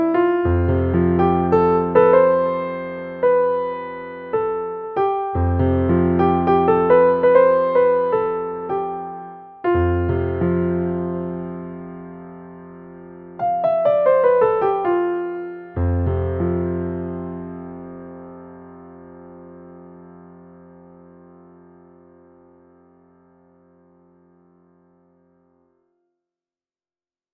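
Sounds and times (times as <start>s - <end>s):
improvisation in F Lydian: 0.0s - 21.0s.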